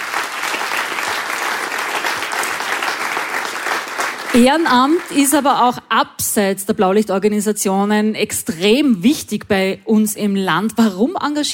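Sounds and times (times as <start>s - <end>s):
audience applause: 0.0s - 5.4s
speech: 4.4s - 11.5s.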